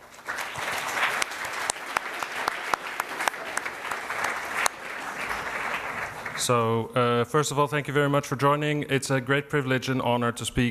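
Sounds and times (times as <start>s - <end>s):
crowd applauding: 0.0s - 6.6s
speech: 6.4s - 10.6s.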